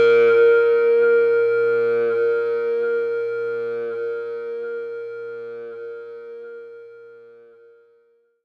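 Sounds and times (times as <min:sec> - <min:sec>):
lead guitar: 0:00.0 - 0:06.4.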